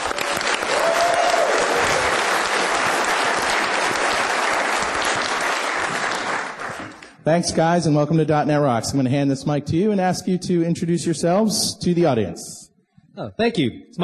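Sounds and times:
audience applause at a live tech conference: 0.0 - 7.2
speech: 7.3 - 12.6, 13.2 - 14.0.

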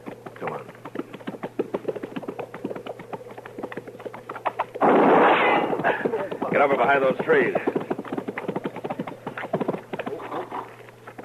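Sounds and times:
rhythmic clattering taps: 0.0 - 4.8, 5.7 - 10.2
gunshot: 4.8 - 5.8
speech: 6.6 - 7.8.

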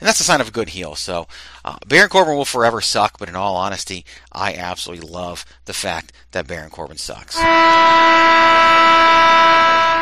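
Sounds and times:
speech: 0.0 - 9.7
NHL hockey goal horn: 7.4 - 10.0.

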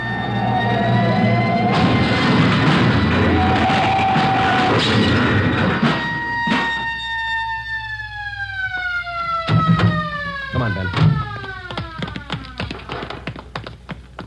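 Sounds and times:
sirens wailing: 0.0 - 13.3
semi-trailer truck crashing into storefront: 1.4 - 7.0
sharp bang: 1.6 - 7.0.

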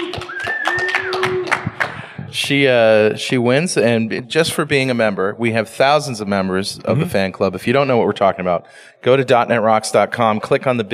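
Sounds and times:
scattered clapping from a few people: 0.0 - 2.6
speech: 2.4 - 10.9.

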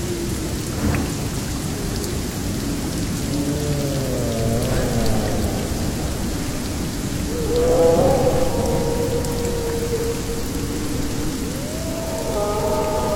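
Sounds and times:
rain pouring through a jungle: 0.0 - 13.1
deep rolling thunder rumble: 2.6 - 13.1
wolf howls: 2.6 - 13.1.

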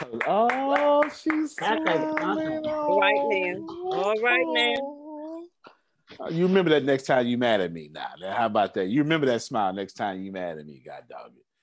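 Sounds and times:
rhythmic hand clapping: 0.0 - 4.0
speech: 0.2 - 4.9, 6.1 - 11.5.

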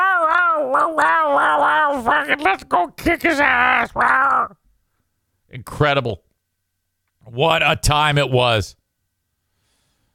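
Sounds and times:
howl-like wail: 0.0 - 2.4
speech: 0.8 - 4.6, 5.5 - 6.2, 7.3 - 8.8.

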